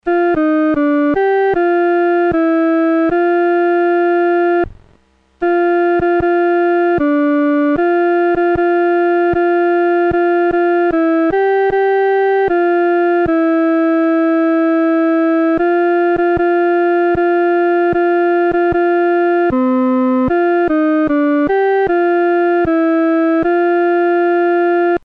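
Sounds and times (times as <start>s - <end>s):
solo instrument: 0.0s - 25.0s.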